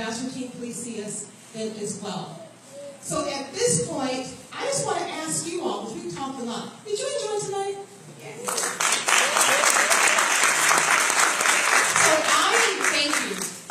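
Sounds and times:
speech: 0:00.2 - 0:09.5
crowd applause: 0:08.5 - 0:13.4.

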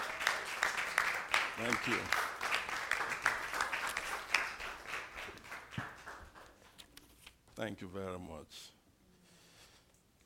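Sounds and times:
crowd applause: 0:00.0 - 0:06.6
speech: 0:01.6 - 0:02.2, 0:07.6 - 0:08.8.

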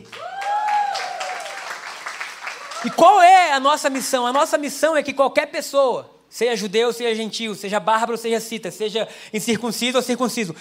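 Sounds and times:
audience applause: 0:00.0 - 0:03.2
speech: 0:02.8 - 0:10.5.

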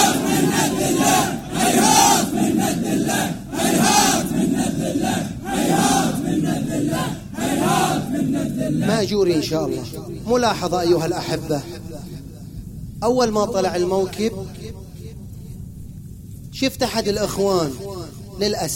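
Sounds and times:
large crowd chanting a religious battle cry in unison: 0:00.0 - 0:09.9
speech: 0:09.0 - 0:11.8, 0:13.0 - 0:14.8, 0:16.6 - 0:18.7.

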